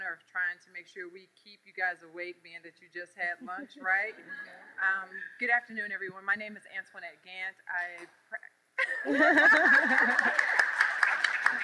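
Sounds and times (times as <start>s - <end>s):
speech: 0.1s - 10.6s
audience laughter: 8.8s - 11.6s
audience applause: 9.4s - 11.6s.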